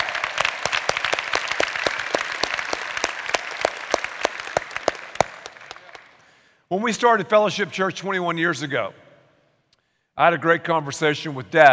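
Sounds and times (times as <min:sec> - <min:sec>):
audience applause: 0:00.0 - 0:06.2
speech: 0:06.7 - 0:09.0, 0:10.2 - 0:11.7.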